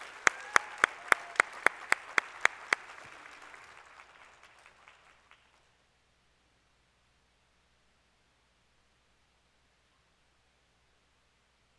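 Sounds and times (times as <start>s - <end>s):
church congregation hand claps welcoming a guest speaker: 0.0s - 5.6s
noise: 0.0s - 11.7s.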